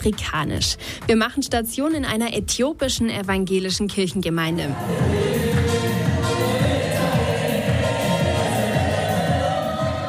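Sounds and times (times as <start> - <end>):
speech: 0.0 - 5.4
people singing loudly: 4.7 - 10.0
audience clapping: 4.9 - 10.0.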